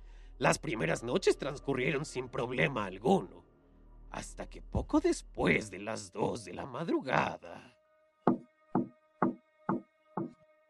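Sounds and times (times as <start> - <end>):
speech: 0.4 - 3.4, 4.1 - 7.8
knocks on a door: 8.3 - 10.4.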